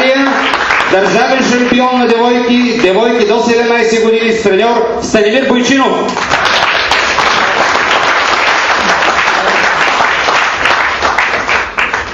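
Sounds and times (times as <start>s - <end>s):
audience applause: 0.0s - 1.9s, 6.2s - 12.1s
speech: 0.9s - 6.6s.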